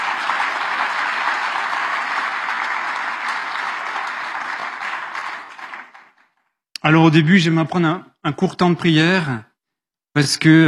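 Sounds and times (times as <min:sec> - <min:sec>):
audience applause: 0:00.0 - 0:06.5
speech: 0:06.9 - 0:09.5, 0:10.2 - 0:10.6.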